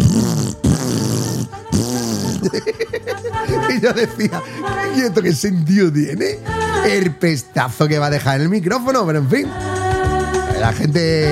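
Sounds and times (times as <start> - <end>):
person imitating revving motorcycle exhaust with lip noises: 0.0 - 2.7
laughter: 2.2 - 5.2
speech: 2.5 - 3.1, 3.8 - 9.8, 10.6 - 11.3.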